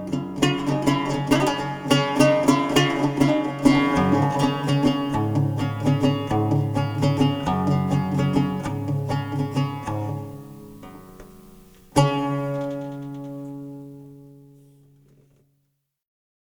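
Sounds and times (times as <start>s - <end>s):
Middle East war music: 0.4s - 12.7s.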